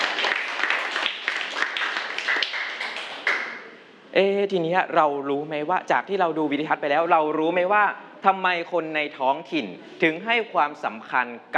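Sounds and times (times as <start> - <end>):
classroom applause: 0.0 - 3.8
speech: 4.2 - 11.5.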